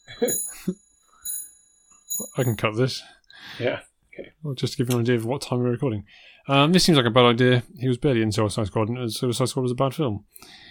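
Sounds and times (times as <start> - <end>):
clock alarm chiming: 0.0 - 2.7
speech: 2.4 - 10.6.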